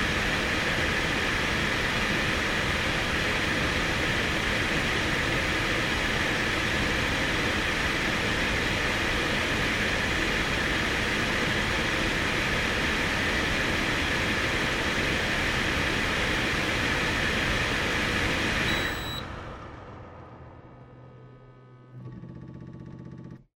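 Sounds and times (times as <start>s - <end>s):
air purifier running on high: 0.0s - 23.4s.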